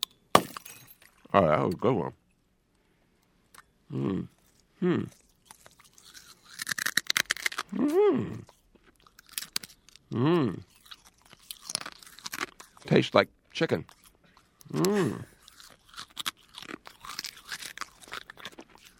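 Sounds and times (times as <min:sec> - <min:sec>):
speech: 0:01.3 - 0:02.2, 0:03.9 - 0:05.2, 0:07.7 - 0:08.5, 0:10.1 - 0:10.7, 0:12.9 - 0:14.0, 0:14.7 - 0:15.3
crunching and chewing glass: 0:04.3 - 0:18.9.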